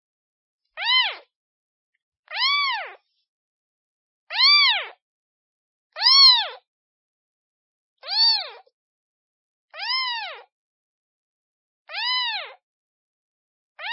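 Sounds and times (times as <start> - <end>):
kitten meowing calling for its mother: 0.8 - 1.3, 2.3 - 3.0, 4.3 - 5.0, 6.0 - 6.6, 8.0 - 8.7, 9.8 - 10.5, 11.9 - 12.6.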